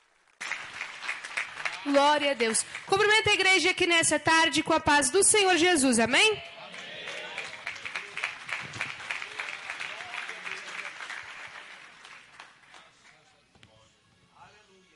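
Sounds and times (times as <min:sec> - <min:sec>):
audience applause: 0:00.4 - 0:03.2, 0:06.6 - 0:13.2
speech: 0:01.8 - 0:06.5.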